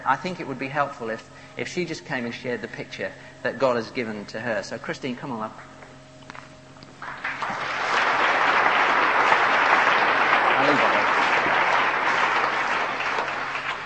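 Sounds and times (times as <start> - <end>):
speech: 0.0 - 5.7
audience applause: 7.0 - 13.8.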